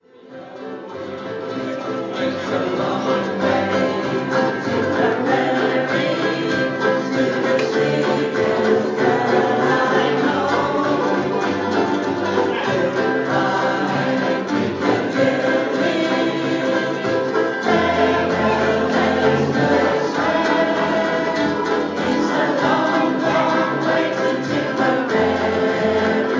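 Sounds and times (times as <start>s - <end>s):
ukuleles: 0.0s - 26.3s.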